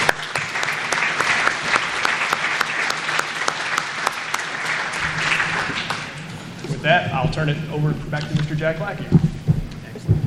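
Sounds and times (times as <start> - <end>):
audience applause: 0.0 - 10.1
speech: 6.9 - 9.3.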